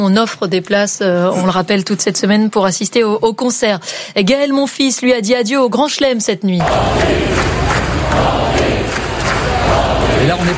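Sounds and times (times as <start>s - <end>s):
speech: 0.0s - 9.5s, 10.2s - 10.5s
tennis crowd chanting a player's name at the US Open: 6.6s - 10.5s.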